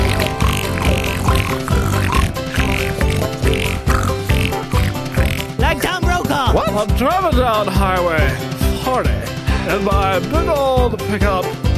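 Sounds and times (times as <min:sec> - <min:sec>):
voice imitating pig oinking: 0:00.0 - 0:05.9
dense musical backing: 0:00.0 - 0:11.7
speech: 0:06.8 - 0:11.6.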